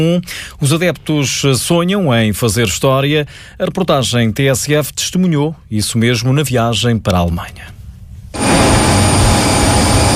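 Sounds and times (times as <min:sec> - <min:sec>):
speech: 0:00.0 - 0:07.8
jet engine roar of an airplane carrying Braga football fans toward Strasbourg airport: 0:08.4 - 0:10.1.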